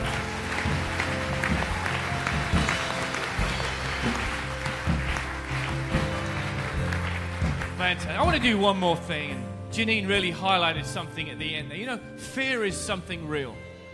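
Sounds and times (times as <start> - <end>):
audience clapping: 0.0 - 8.7
speech: 7.8 - 13.6.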